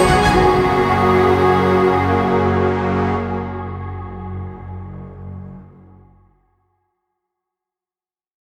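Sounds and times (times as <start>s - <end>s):
ceremonial fanfare: 0.0s - 4.8s.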